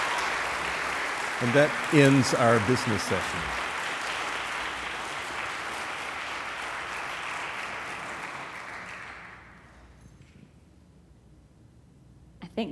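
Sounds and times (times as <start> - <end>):
audience applause: 0.0 - 9.7
speech: 1.4 - 3.6.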